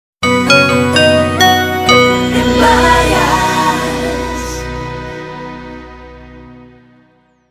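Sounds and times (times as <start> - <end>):
mobile audio logo jingle: 0.2 - 7.2.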